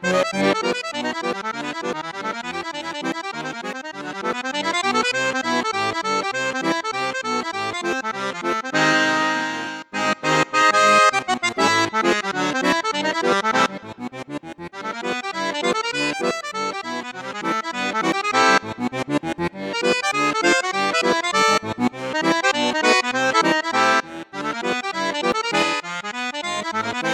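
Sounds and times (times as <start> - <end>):
accordion on 16 8 register: 0.0 - 27.1.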